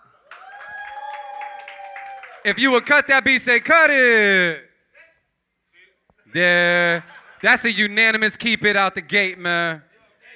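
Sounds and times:
crowd clapping: 0.2 - 3.7
speech: 2.4 - 4.7, 6.3 - 9.9
laughter: 6.4 - 8.0.

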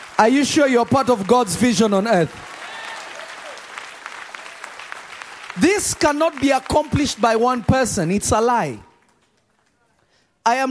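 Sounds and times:
audience applause: 0.0 - 7.5
speech: 0.2 - 2.5, 5.6 - 8.9, 10.4 - 10.6.

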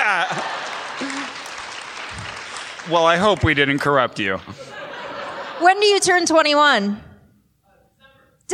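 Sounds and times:
laughter: 0.0 - 1.7, 3.4 - 6.1
audience clapping at a live comedy-style show: 0.0 - 4.4
speech: 2.9 - 4.7, 5.6 - 7.1.

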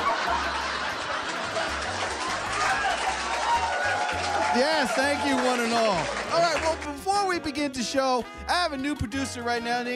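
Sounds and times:
canned fake studio audience laughter: 0.0 - 3.7
speech: 4.6 - 9.9.

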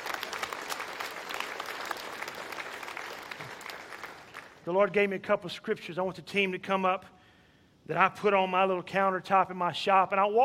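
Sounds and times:
crowd applause: 0.0 - 4.6
speech: 4.7 - 7.2, 7.9 - 10.4.

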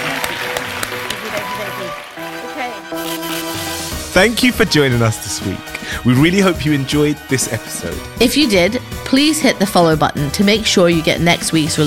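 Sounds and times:
audience applause: 0.0 - 7.7
speech: 4.2 - 11.8.

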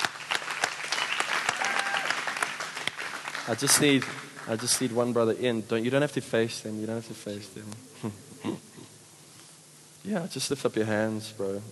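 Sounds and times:
audience applause: 0.0 - 4.8
speech: 3.5 - 8.7, 10.1 - 11.6.

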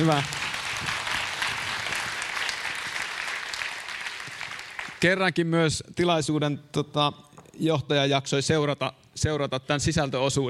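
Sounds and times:
speech: 0.0 - 0.9, 5.0 - 10.4
audience applause: 0.0 - 5.0.

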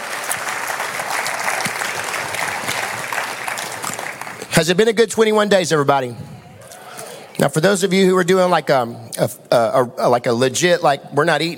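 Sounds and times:
audience applauding: 0.0 - 4.7
speech: 4.6 - 6.3, 7.4 - 11.5.

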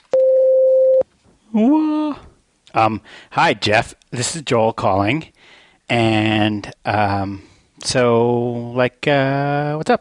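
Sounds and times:
voicemail beep: 0.1 - 1.0
speech: 1.5 - 10.0.

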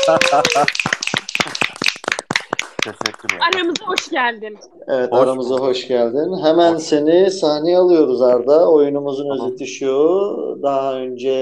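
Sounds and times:
laughter: 0.0 - 0.7, 2.3 - 11.4
audience applause: 0.0 - 4.2
speech: 0.1 - 1.0, 2.8 - 11.4.

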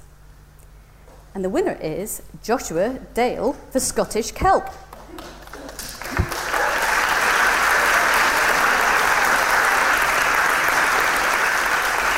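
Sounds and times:
speech: 1.4 - 5.3
audience applause: 5.0 - 12.1.

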